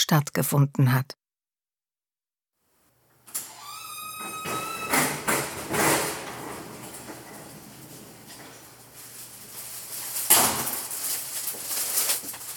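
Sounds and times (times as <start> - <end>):
speech: 0.1 - 1.2
shop's automatic door sliding with a mechanical whine: 3.3 - 11.4
dull thuds and rattling rumbles of a moving door: 4.5 - 9.0.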